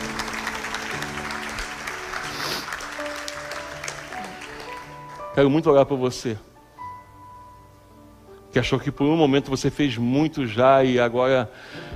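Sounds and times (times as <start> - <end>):
audience applauding: 0.0 - 5.4
speech: 5.4 - 6.5, 8.5 - 11.9.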